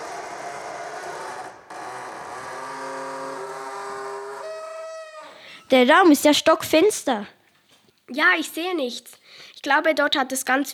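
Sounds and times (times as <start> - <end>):
door opening: 0.0 - 5.4
speech: 5.7 - 7.4, 8.1 - 10.7.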